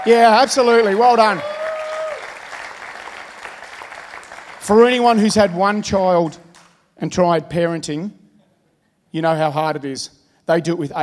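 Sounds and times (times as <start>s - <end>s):
speech: 0.0s - 1.6s, 4.6s - 6.4s, 7.0s - 8.2s, 9.1s - 11.0s
audience applause: 0.0s - 5.1s.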